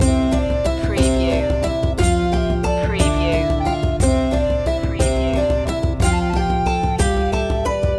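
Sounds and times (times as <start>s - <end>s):
medieval dance music loop: 0.0s - 7.9s.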